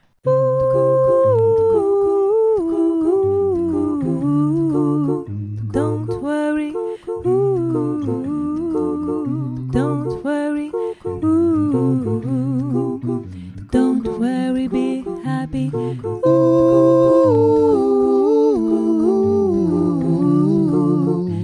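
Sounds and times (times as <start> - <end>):
voice: 0.3 - 5.2, 5.8 - 21.4.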